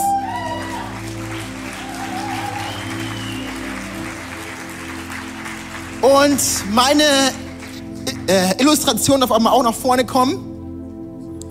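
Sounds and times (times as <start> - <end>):
audience applause: 0.0 - 8.6
speech: 6.0 - 7.4, 8.3 - 10.5.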